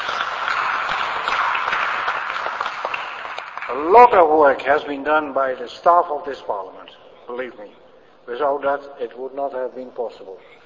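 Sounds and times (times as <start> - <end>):
steady audience applause: 0.0 - 3.9
speech: 3.7 - 10.6.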